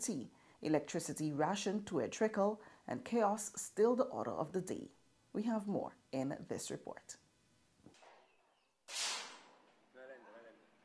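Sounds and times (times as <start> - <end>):
speech: 0.0 - 7.2
gunshot crack at a recreational shooting range in Havana Park: 7.9 - 9.9.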